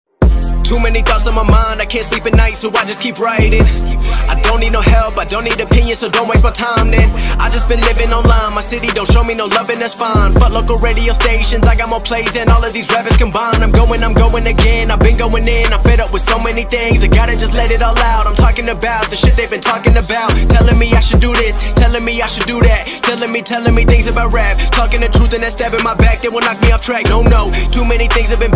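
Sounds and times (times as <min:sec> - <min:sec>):
English rap song: 0:00.2 - 0:28.5.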